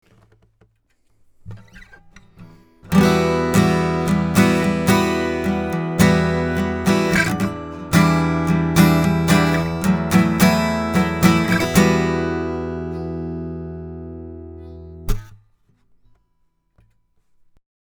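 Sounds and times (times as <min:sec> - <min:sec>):
steel-string guitar through Rupert Neve Designs Portico 5017: 0:02.9 - 0:15.4.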